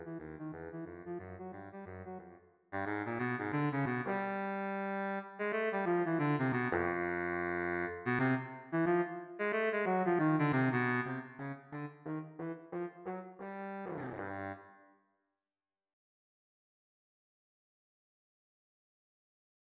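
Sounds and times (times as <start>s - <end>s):
baritone saxophone: 0.0s - 14.7s.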